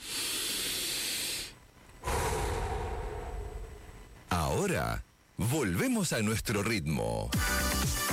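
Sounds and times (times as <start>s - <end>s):
deep breath: 0.0s - 4.1s
speech: 4.6s - 8.0s.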